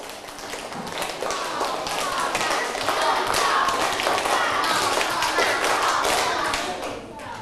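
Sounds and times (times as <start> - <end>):
group clapping hands in steps: 0.0 - 7.4.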